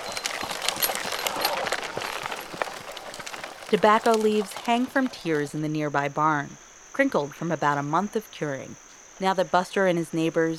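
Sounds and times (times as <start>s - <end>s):
harnessed workhorse hooves trotting in a circle powering a sugar cane mill: 0.0s - 5.9s
speech: 3.7s - 10.5s.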